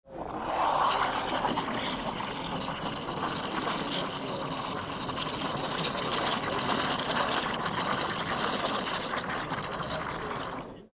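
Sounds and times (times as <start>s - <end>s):
coffee cream sputtering into cup: 0.7s - 10.9s.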